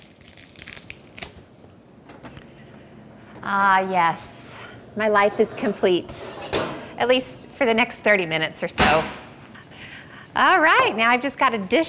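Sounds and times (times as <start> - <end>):
fresh cilantro leaves torn by hand: 0.0 - 1.4
speech: 3.4 - 4.3, 5.0 - 6.2, 7.0 - 9.2, 10.4 - 11.8.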